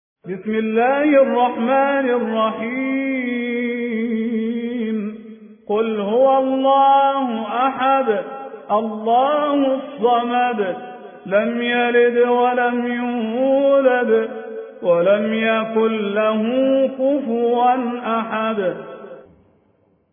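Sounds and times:
Quran recitation: 0.2s - 19.3s.

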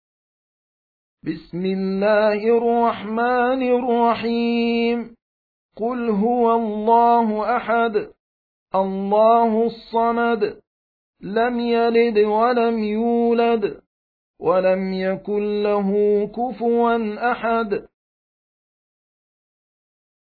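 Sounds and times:
Quran recitation: 1.2s - 5.2s, 5.8s - 10.6s, 11.2s - 17.9s.

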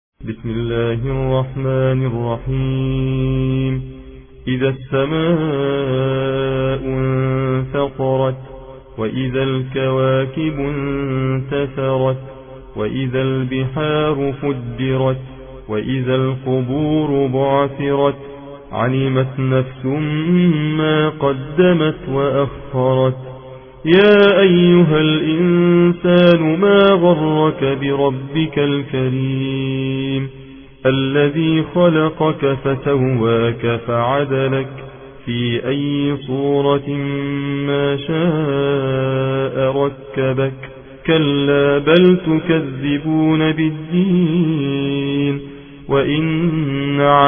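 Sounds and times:
Quran recitation in the Hafs an Asim reading: 0.2s - 47.2s.

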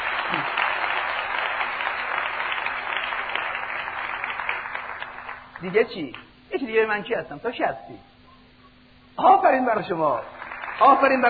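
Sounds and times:
audience clapping: 0.0s - 6.3s, 10.0s - 11.2s
speech: 5.6s - 8.1s, 9.2s - 11.2s.

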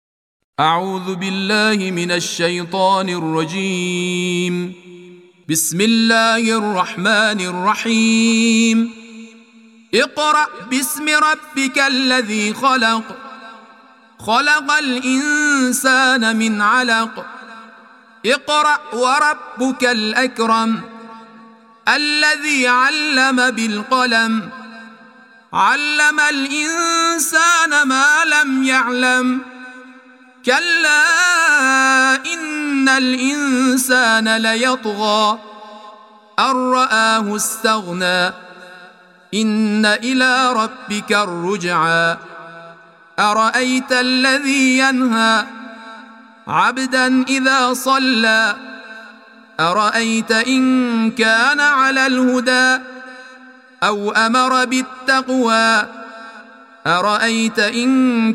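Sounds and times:
Quran recitation: 0.6s - 58.3s.

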